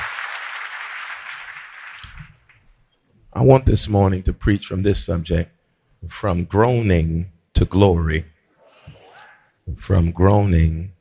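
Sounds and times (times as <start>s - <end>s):
audience clapping: 0.0s - 2.7s
speech: 3.4s - 8.3s, 9.7s - 10.9s.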